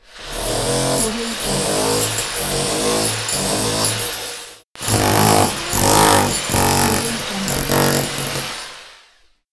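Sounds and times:
repair sounds: 0:00.0 - 0:09.0.

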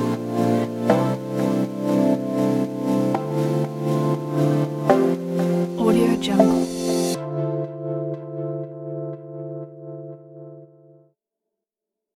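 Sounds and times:
fashion house lounge music: 0:00.0 - 0:08.8.

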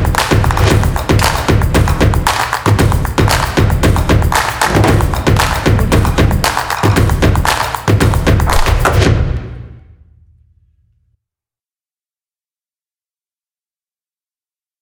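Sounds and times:
percussion: 0:00.0 - 0:09.8.

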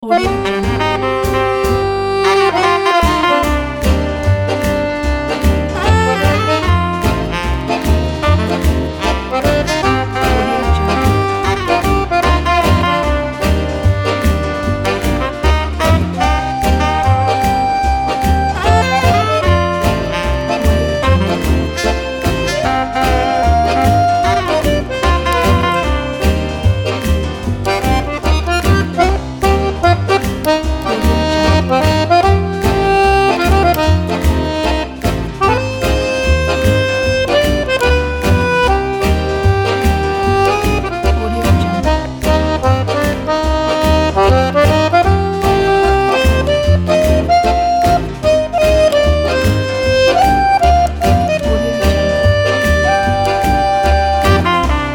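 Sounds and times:
jazz accordion: 0:00.0 - 0:54.9.

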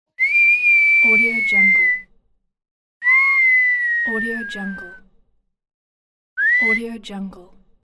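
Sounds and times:
person whistling: 0:00.2 - 0:02.0, 0:03.0 - 0:05.0, 0:06.4 - 0:06.8.

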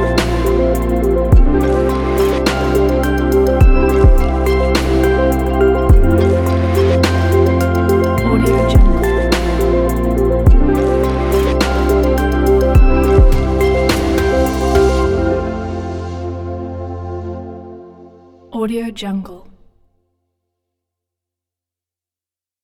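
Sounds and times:
lo-fi chill music: 0:00.0 - 0:17.9.

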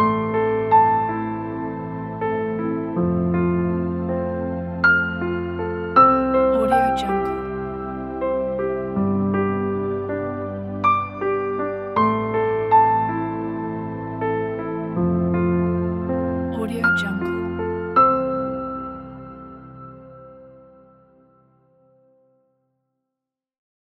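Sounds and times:
atmospheric background: 0:00.0 - 0:20.8
romantic piano music: 0:00.0 - 0:22.2.

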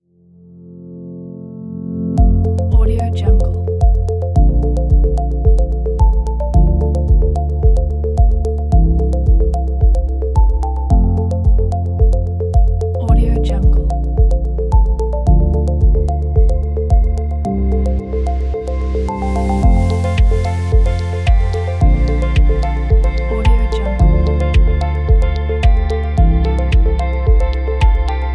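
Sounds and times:
minimal technological ambient music: 0:00.2 - 0:28.3.

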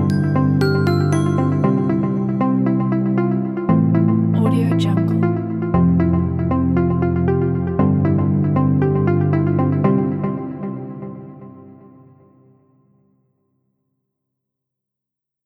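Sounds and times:
bright motivational music: 0:00.0 - 0:11.8.

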